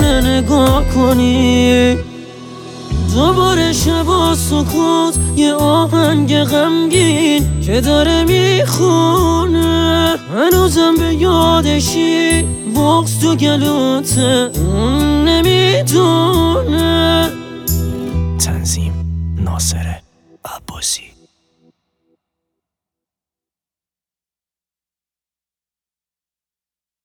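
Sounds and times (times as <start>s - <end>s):
sad song: 0.0s - 21.2s.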